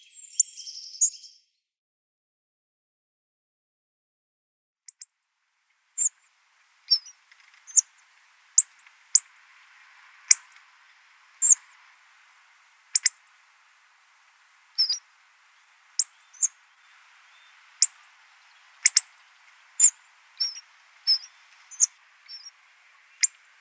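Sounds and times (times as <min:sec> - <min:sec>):
hawfinch song: 0:00.0 - 0:01.5, 0:04.9 - 0:23.5.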